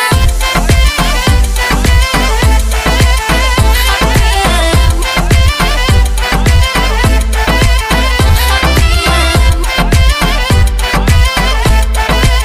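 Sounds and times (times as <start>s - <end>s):
Balkan remix ringtone bass boosted: 0.1s - 12.4s.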